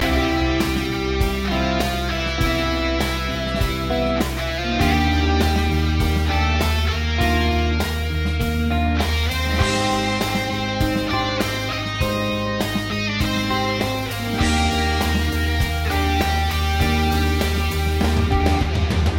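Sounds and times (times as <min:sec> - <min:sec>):
looped guitar melodies: 0:00.0 - 0:19.1.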